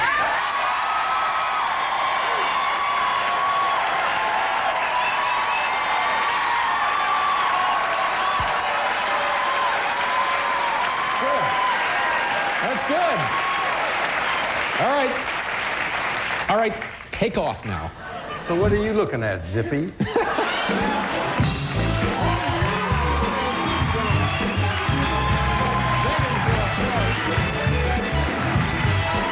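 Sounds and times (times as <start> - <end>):
whoops and cheers: 0.0 - 14.6, 20.4 - 27.8
audience applause: 0.0 - 17.1, 20.2 - 29.2
speech: 16.6 - 20.8
laughter: 18.0 - 19.0, 19.6 - 21.5.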